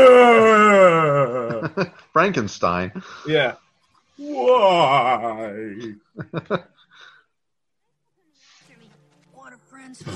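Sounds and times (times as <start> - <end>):
person screaming: 0.0 - 1.6, 4.2 - 5.7
speech: 1.8 - 3.6, 4.2 - 6.7, 9.9 - 10.1.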